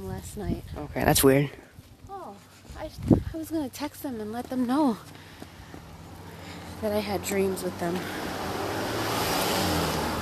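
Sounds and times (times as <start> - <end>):
speech: 0.2 - 1.6, 2.8 - 5.3, 6.8 - 8.7
car passing by on a road: 5.1 - 10.2.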